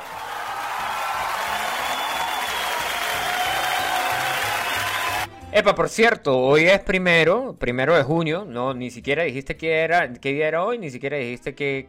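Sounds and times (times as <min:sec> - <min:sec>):
applause: 0:00.0 - 0:05.3
speech: 0:05.6 - 0:11.8.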